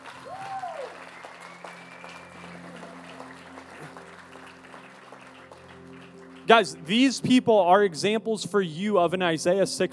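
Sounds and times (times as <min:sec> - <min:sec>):
audience clapping: 0:00.0 - 0:07.2
speech: 0:06.5 - 0:09.9.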